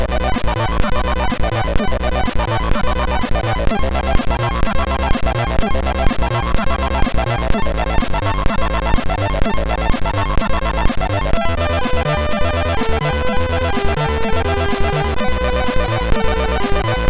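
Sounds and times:
intro tune on MOS6581R3 chip: 0.2s - 17.0s.

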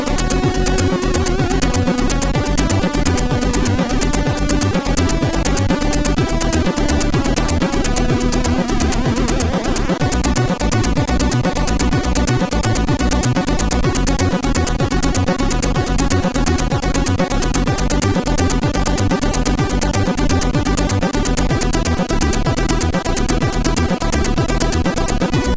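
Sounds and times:
MOS6581R4 sound chip music: 0.0s - 25.5s.

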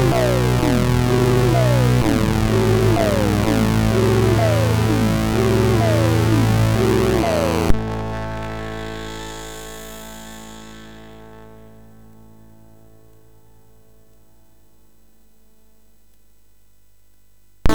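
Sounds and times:
MOS6581R3 synth zap: 0.0s - 12.6s.

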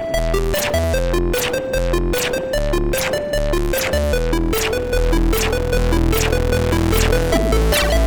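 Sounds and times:
chiptune music from a MOS6581R3 sound chip: 0.0s - 8.0s.

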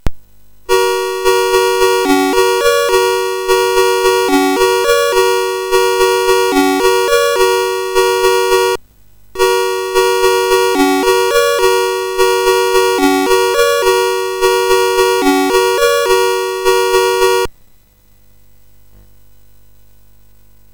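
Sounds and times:
MOS6581R4 SID chip game music: 0.7s - 8.8s, 9.4s - 17.5s.

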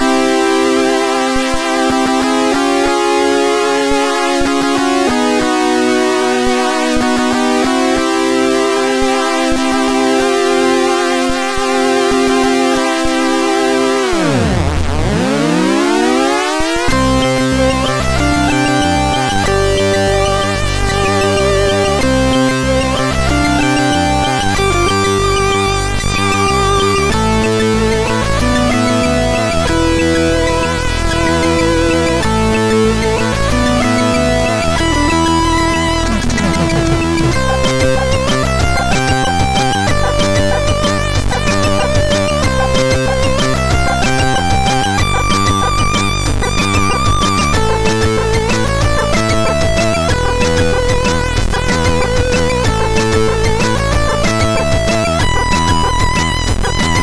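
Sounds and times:
MOS6581R4 SID chip music: 0.0s - 57.0s.

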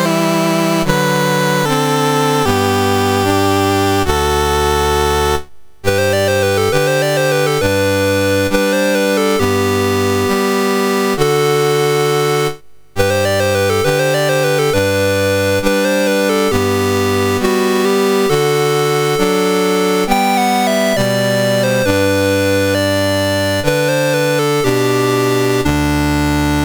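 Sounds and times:
national anthem on MOS6581R4: 0.0s - 26.6s.

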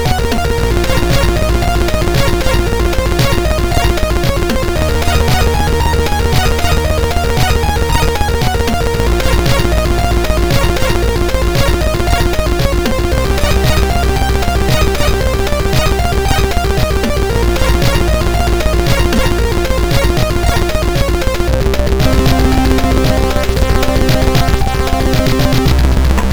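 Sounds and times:
drums on a MOS6581R2 SID chip: 0.0s - 26.3s.

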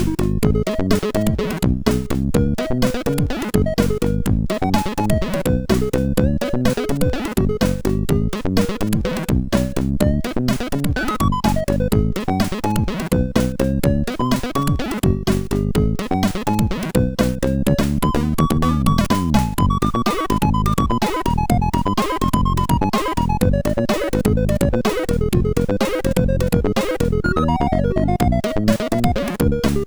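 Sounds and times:
synth funk on MOS6581R4 SID chip: 0.0s - 29.8s.

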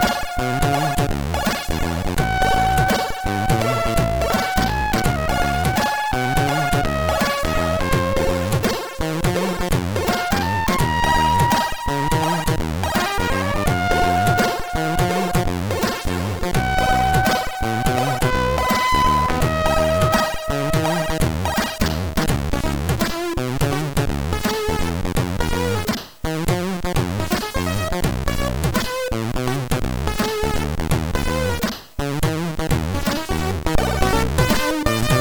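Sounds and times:
slow Europop chiptune on MOS6581R4 SID chip: 0.0s - 31.6s, 32.3s - 35.1s.

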